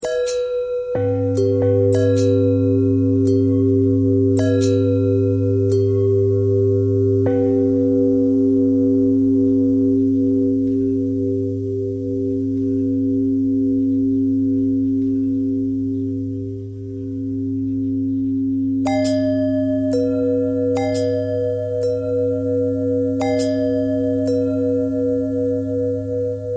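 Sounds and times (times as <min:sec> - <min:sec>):
long bell ringing: 0:00.0 - 0:26.5.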